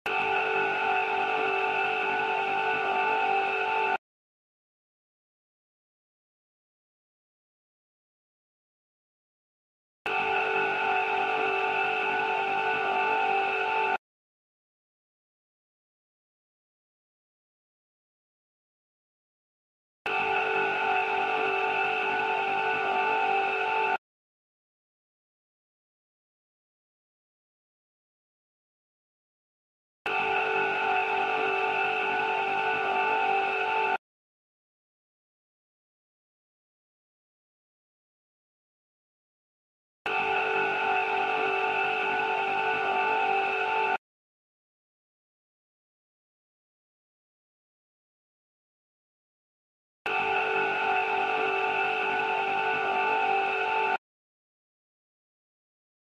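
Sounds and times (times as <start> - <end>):
choir singing: 0.1 - 4.0, 10.1 - 14.0, 20.1 - 24.0, 30.1 - 34.0, 40.1 - 44.0, 50.1 - 54.0.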